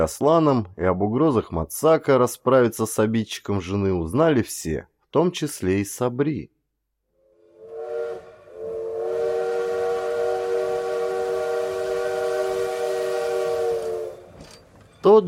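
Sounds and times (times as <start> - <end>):
speech: 0.0 - 6.5, 15.0 - 15.2
train whistle at the railway station in Spitak on an autumn evening: 7.2 - 14.4.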